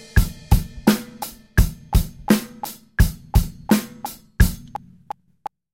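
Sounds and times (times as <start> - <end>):
beginner drum fills: 0.0 - 5.1.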